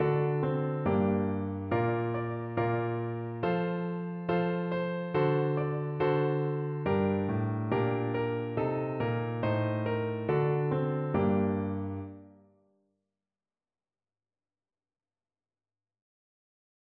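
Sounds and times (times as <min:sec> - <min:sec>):
piano in Slovakia: 0:00.0 - 0:12.6.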